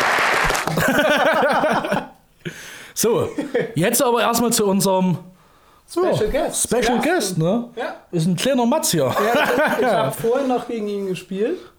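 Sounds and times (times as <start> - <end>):
applause: 0.0 - 1.0
laughter: 0.4 - 2.2, 9.0 - 10.8
speech: 3.0 - 5.3, 5.9 - 11.7.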